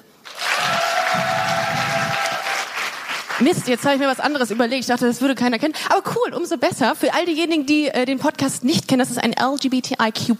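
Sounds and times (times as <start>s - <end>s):
audience clapping: 0.2s - 4.8s
speech: 3.4s - 10.3s.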